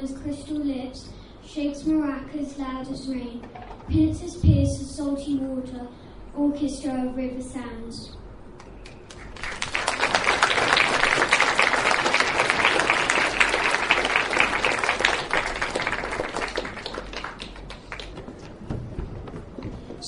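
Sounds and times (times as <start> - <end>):
speech: 0.0 - 8.2
audience applause: 8.8 - 18.6.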